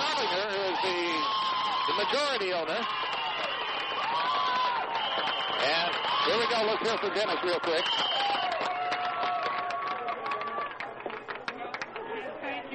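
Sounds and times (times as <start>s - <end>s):
crowd cheering: 0.0s - 12.6s
speech: 0.3s - 3.2s, 5.6s - 8.5s
scattered clapping: 1.3s - 12.1s
shrill whistles: 2.8s - 6.6s, 7.7s - 8.6s.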